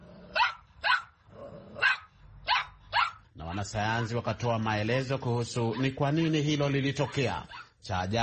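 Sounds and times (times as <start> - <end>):
dog barking: 0.3 - 1.2, 1.8 - 3.6, 7.0 - 7.8
speech: 3.6 - 8.2.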